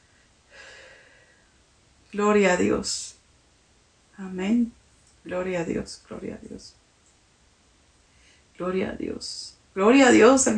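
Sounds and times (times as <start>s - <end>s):
person taking a deep breath during a prayer: 0.5s - 1.5s
speech: 2.1s - 3.2s, 4.2s - 6.8s, 8.6s - 10.5s.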